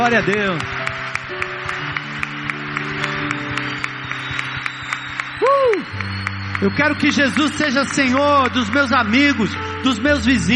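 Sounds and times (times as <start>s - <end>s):
speech: 0.0s - 1.4s, 5.6s - 10.5s
audience applause: 0.0s - 10.0s.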